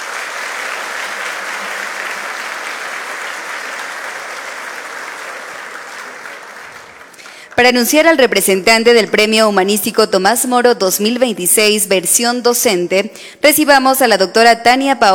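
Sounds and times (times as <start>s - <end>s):
loud audience applause: 0.0s - 8.1s
speech: 7.6s - 15.1s.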